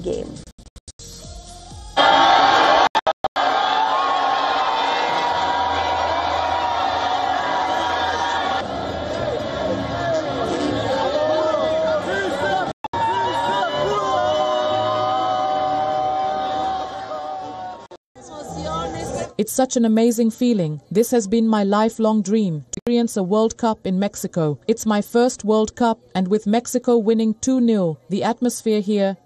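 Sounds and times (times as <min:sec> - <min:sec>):
speech: 0:00.0 - 0:00.4, 0:19.4 - 0:29.2
huge stadium crowd of football fans roaring: 0:02.0 - 0:19.4.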